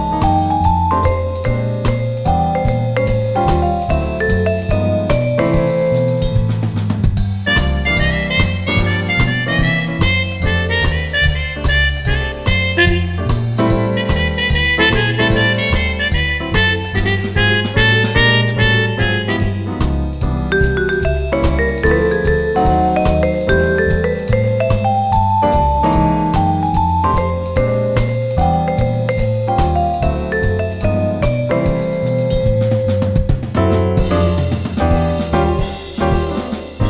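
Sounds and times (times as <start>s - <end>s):
jazz combo playing: 0.0s - 36.8s.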